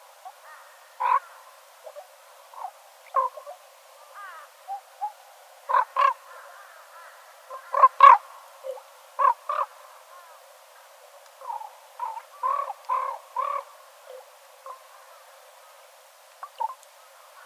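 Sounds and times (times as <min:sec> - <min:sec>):
Northern raven cawing: 0:00.2 - 0:17.4.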